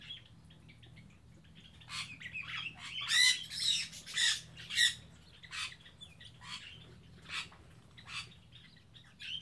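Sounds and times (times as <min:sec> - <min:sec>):
birds chirping in an aviary on Spetses: 0:00.0 - 0:09.4.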